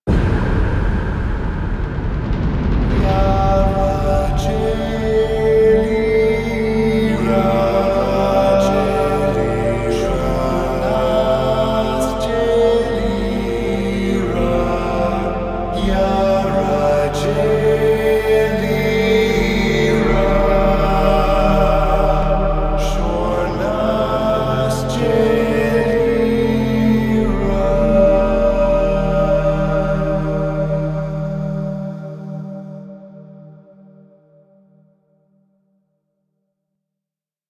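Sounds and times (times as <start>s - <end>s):
climax music cue: 0.1s - 33.8s.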